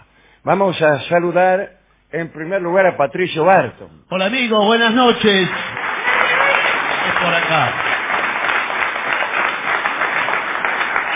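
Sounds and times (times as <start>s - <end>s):
speech: 0.4s - 5.8s, 7.2s - 7.9s
audience applause: 5.1s - 11.1s.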